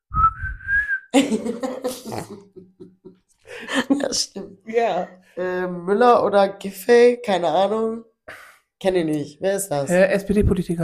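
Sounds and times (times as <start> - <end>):
person whistling a pop song melody: 0.1 - 1.2
bursts of laughter or coughing: 1.1 - 4.6
speech: 1.2 - 2.6, 4.1 - 10.8.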